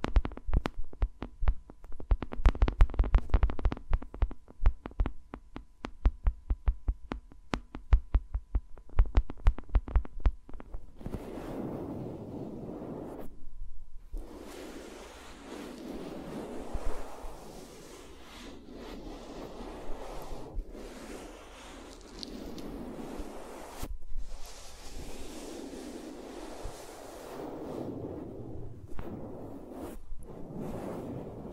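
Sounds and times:
fingers tapping on microphones: 0.0s - 10.9s
fingers rubbing and swishing around microphones: 10.6s - 13.4s, 14.1s - 31.5s.

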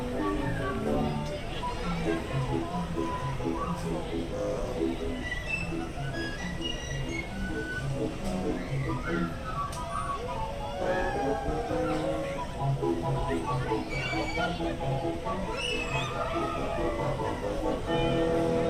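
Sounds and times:
Mad Tea Party and Alice in Wonderland attractions ambience: 0.0s - 18.6s.

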